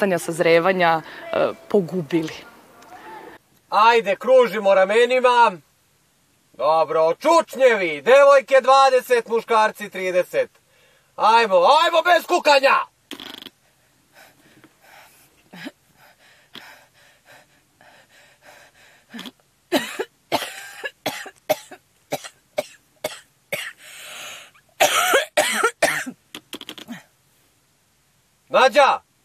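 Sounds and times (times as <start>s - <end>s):
speech: 0.0s - 2.5s, 3.7s - 5.7s, 6.6s - 10.6s, 11.2s - 12.9s, 28.5s - 29.0s
gasping breaths: 13.7s - 19.4s, 23.8s - 24.6s
person coughing in a prolonged fit: 19.1s - 23.8s, 24.8s - 26.2s.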